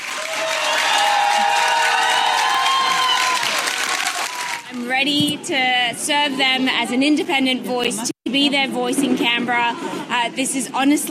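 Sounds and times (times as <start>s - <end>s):
supporters cheering and applauding Senator Fatima Payman in Western Australia: 0.0s - 4.8s
speech: 5.0s - 11.0s.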